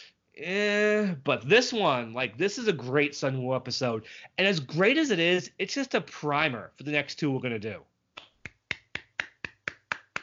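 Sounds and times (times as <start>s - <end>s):
speech: 0.4s - 7.9s
hands clapping: 8.2s - 10.2s.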